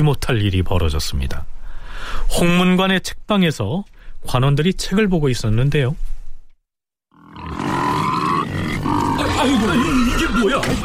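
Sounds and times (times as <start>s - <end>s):
speech: 0.0s - 6.2s, 9.4s - 10.8s
pig grunting and squealing: 7.2s - 10.8s.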